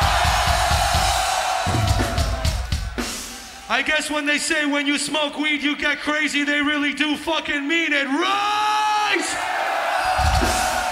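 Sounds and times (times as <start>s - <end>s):
concert crowd cheering: 0.0s - 4.7s, 8.1s - 10.8s
speech: 3.7s - 8.6s.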